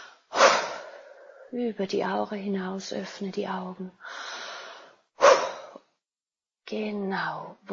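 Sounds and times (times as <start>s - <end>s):
forceful exhaling in a guided breathing exercise: 0.0s - 1.2s, 4.1s - 5.8s
speech: 1.5s - 4.3s, 6.7s - 7.7s.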